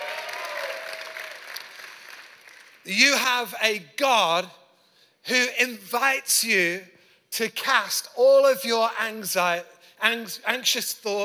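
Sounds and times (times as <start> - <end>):
audience applause during a sermon: 0.0 - 2.8
speech: 2.8 - 4.6, 5.2 - 11.2.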